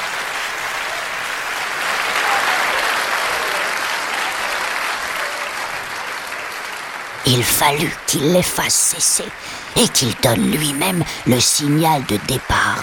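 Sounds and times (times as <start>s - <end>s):
theatre audience applause: 0.0s - 12.8s
speech: 7.3s - 12.8s.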